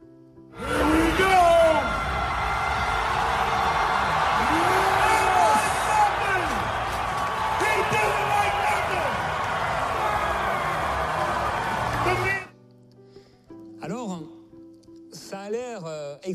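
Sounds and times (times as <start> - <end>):
crowd cheering at strongman lift: 0.6 - 12.5.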